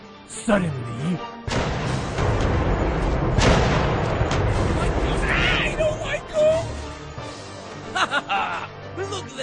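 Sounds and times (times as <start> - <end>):
speech: 0.3 - 1.7
ghost ship cannons firing: 1.5 - 6.0
laughter: 7.8 - 8.8.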